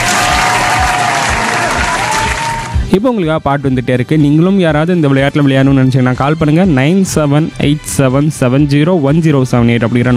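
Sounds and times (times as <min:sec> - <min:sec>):
applause for a caller on a community radio show: 0:00.0 - 0:02.8
speech: 0:03.0 - 0:10.1.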